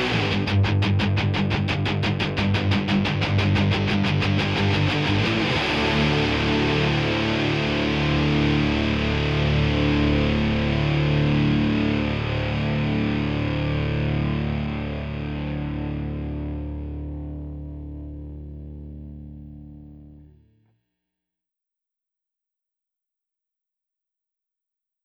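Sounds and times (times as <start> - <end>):
rhythm guitars: 0.0 - 18.6.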